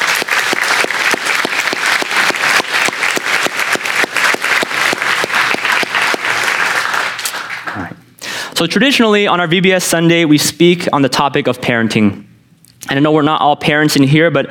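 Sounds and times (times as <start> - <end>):
audience round of applause: 0.0 - 8.0
speech: 8.6 - 14.5.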